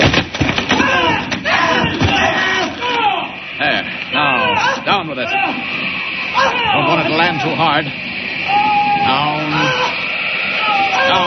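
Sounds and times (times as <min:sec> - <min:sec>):
wooden propeller being smashed: 0:00.0 - 0:02.8
voices and crowd murmur: 0:01.2 - 0:11.2
speech: 0:07.0 - 0:08.1, 0:09.1 - 0:09.7.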